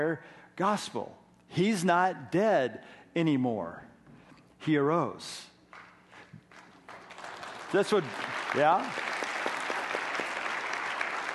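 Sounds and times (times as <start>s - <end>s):
speech: 0.0s - 3.9s, 4.6s - 5.5s, 7.7s - 9.1s
audience applause: 6.6s - 11.3s.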